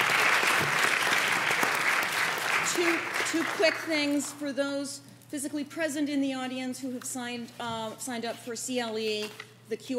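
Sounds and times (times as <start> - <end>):
audience applause after a panel discussion: 0.0 - 3.8
speech: 2.8 - 9.9.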